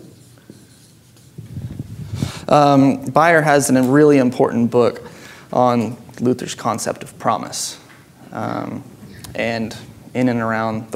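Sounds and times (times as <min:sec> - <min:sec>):
writing on a board during a lesson: 0:00.0 - 0:01.6
speech: 0:02.5 - 0:10.9.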